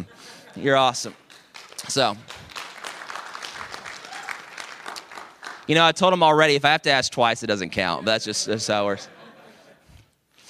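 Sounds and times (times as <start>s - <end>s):
speech: 0.6s - 1.2s, 1.9s - 2.4s, 5.7s - 9.2s
audience applause: 1.2s - 5.7s
laughter: 8.0s - 10.0s.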